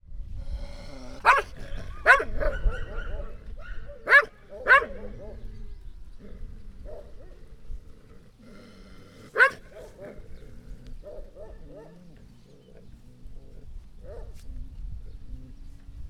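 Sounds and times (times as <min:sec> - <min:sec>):
dog yelping: 0:01.2 - 0:05.3, 0:09.4 - 0:09.9
dog barking: 0:01.2 - 0:05.4, 0:06.8 - 0:07.4, 0:09.3 - 0:10.2, 0:11.0 - 0:12.0, 0:14.0 - 0:14.4.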